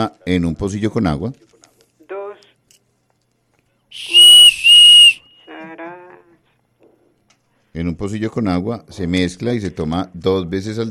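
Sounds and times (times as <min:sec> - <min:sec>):
speech: 0:00.0 - 0:01.6, 0:07.8 - 0:10.9
whistle blown: 0:04.0 - 0:05.5.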